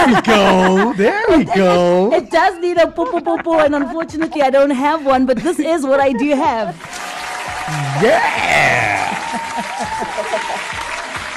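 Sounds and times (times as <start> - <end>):
laughter: 0.0 - 11.3
speech: 0.1 - 7.1, 7.7 - 10.9
round of applause: 6.7 - 11.3.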